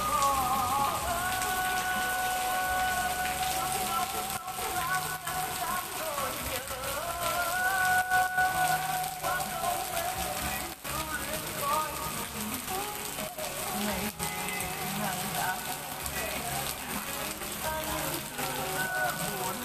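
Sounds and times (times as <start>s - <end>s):
faint voices: 0.0s - 19.6s
rain falling steadily in Danang Vietnam: 0.0s - 19.6s.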